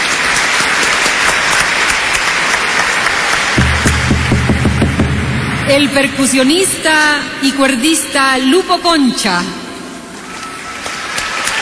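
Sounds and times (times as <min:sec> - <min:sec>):
strong audience applause: 0:00.0 - 0:05.1, 0:10.6 - 0:11.6
speech: 0:05.7 - 0:09.6.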